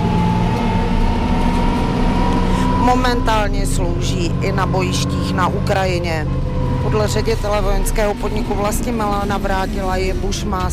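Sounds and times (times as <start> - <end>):
Bushmaster armoured vehicle engine drone driving over 2.5-metre obstacles: 0.0 - 10.7
speech: 2.9 - 10.7.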